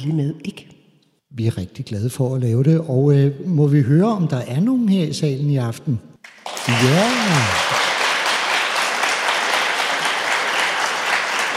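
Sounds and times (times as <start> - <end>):
speech: 0.0 - 7.8
audience clapping: 6.2 - 11.5.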